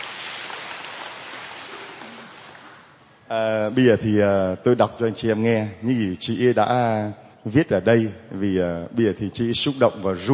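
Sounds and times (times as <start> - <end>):
audience applause: 0.0 - 2.9
speech: 3.3 - 10.3.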